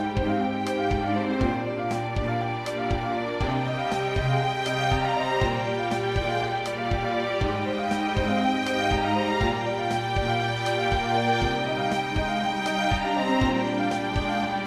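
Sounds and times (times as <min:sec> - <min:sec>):
percussion: 0:00.0 - 0:14.6
piano in C minor: 0:00.0 - 0:14.6
strings in C minor: 0:00.0 - 0:14.6.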